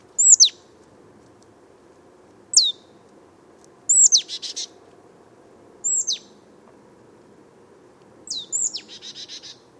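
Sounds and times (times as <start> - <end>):
marsh tit calling: 0.2 - 0.6, 2.5 - 3.0, 3.9 - 4.8, 5.8 - 6.4, 8.3 - 9.7.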